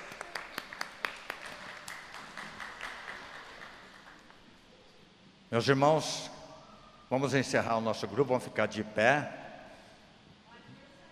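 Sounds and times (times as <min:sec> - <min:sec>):
crowd applause: 0:00.0 - 0:04.4
speech: 0:05.5 - 0:06.3, 0:07.1 - 0:09.4.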